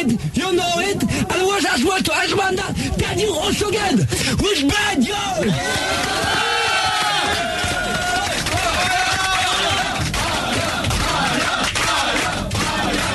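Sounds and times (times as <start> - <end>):
speech: 0.0 - 6.6
crowd cheering and shouting in a standing ovation: 5.1 - 13.1.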